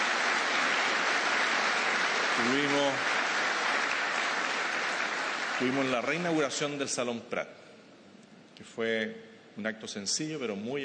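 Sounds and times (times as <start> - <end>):
audience applause at a ministerial speech honouring the Navy: 0.0 - 6.7
speech: 2.4 - 3.1, 5.6 - 7.6, 8.6 - 10.8.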